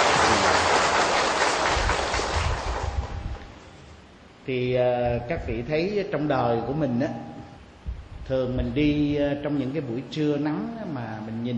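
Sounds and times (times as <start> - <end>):
audience applause: 0.0 - 3.3
speech: 4.5 - 7.3, 8.3 - 11.5.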